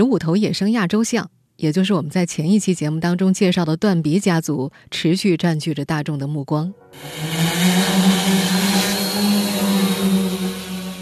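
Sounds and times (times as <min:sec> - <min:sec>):
speech: 0:00.0 - 0:08.4
surveillance drone taking off: 0:07.0 - 0:11.0.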